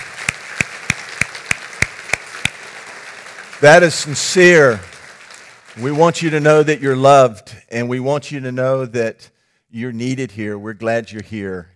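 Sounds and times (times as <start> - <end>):
audience applause: 0.0 - 6.2
speech: 3.6 - 4.9, 5.8 - 11.7.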